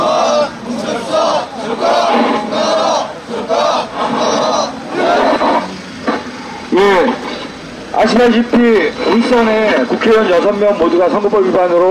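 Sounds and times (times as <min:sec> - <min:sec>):
crowd chanting protest slogans in unison: 0:00.0 - 0:06.7
speech: 0:08.0 - 0:11.9.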